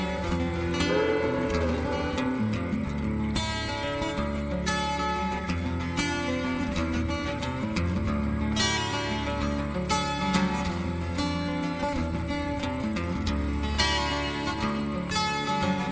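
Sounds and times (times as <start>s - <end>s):
acoustic music: 0.0s - 15.5s.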